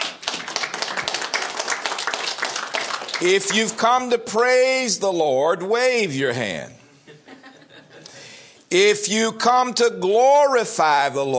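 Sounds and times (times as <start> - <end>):
audience clapping hands: 0.0 - 4.2
speech: 3.2 - 6.8, 8.7 - 11.3
laughter: 6.9 - 8.3.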